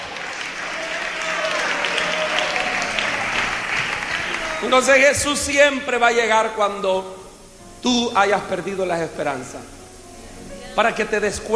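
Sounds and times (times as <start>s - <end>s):
audience applause: 0.0s - 5.2s
speech: 4.6s - 7.2s, 7.8s - 9.8s, 10.8s - 11.5s.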